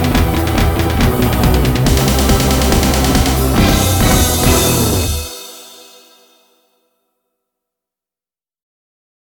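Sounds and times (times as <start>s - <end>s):
backing track without guitar: 0.0s - 6.6s.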